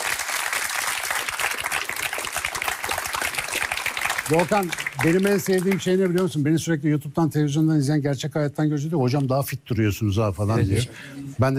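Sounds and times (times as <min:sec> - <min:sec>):
audience applause: 0:00.0 - 0:06.4
speech: 0:04.3 - 0:11.5.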